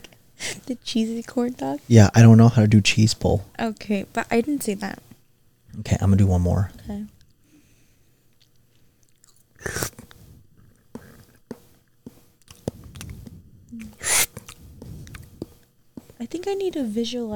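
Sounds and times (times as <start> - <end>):
speech: 0.7 - 5.1, 5.8 - 7.2, 16.6 - 17.3
person chewing noodles with meat: 8.3 - 15.6.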